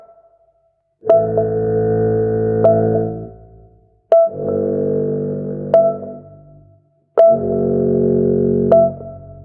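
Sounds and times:
sad keyboard loop: 1.0 - 9.4.

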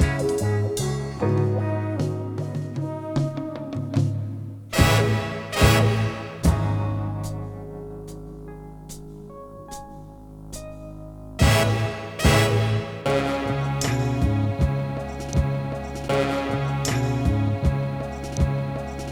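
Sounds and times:
horns: 0.0 - 7.7, 11.4 - 19.0.

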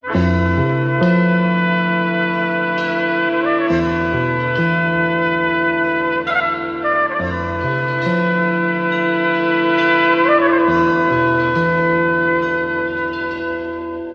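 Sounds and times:
jazz horns loop: 0.0 - 14.1.

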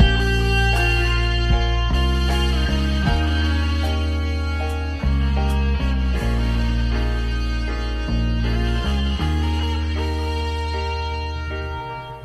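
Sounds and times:
guitar loops: 0.0 - 12.2.

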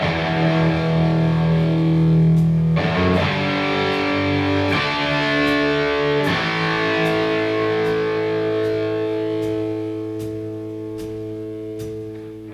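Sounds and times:
guitar loops: 0.0 - 12.5.

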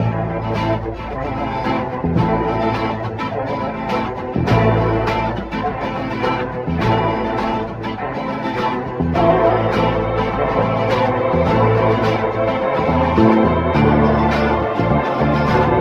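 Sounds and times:
sad string loops: 0.0 - 15.7.

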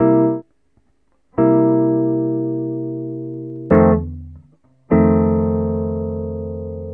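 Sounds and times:
guitar loops: 1.4 - 6.9.

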